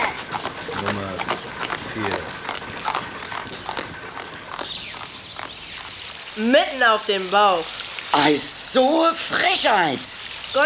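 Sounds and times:
horse hooves clip-clopping: 0:00.0 - 0:06.4
speech: 0:06.4 - 0:10.6.

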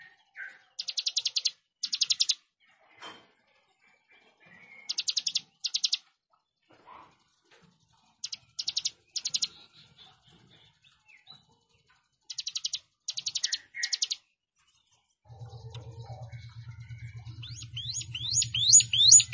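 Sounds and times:
plain prinia song: 0:00.0 - 0:02.4, 0:04.6 - 0:06.0, 0:08.2 - 0:09.8, 0:12.3 - 0:14.3, 0:15.3 - 0:19.3.

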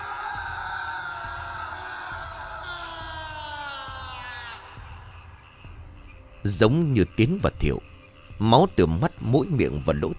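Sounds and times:
terrified scream: 0:00.0 - 0:05.6
speech: 0:06.5 - 0:10.1.

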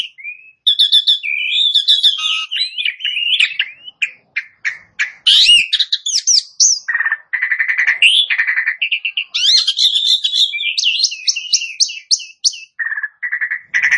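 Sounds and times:
Asian pied starling song: 0:00.0 - 0:13.9.

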